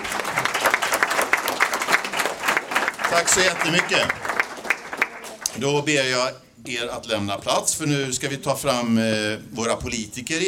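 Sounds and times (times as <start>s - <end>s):
audience applause at a local community event in Floby: 0.0s - 5.5s
speech: 3.1s - 4.2s, 5.5s - 10.4s.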